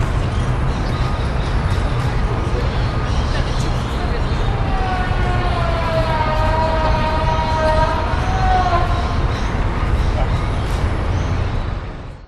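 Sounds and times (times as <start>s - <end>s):
birds in botanic gardens by a river: 0.0s - 12.2s
construction noise: 0.0s - 12.2s
distant city hum: 0.0s - 12.2s
people in botanic gardens by a river: 1.9s - 10.6s.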